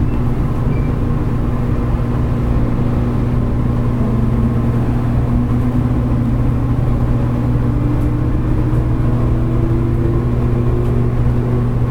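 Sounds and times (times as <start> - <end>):
JR Kyushu 811 series local train running rumble on the Kagoshima line: 0.0 - 11.8
faint tone rising in pitch: 3.5 - 10.4.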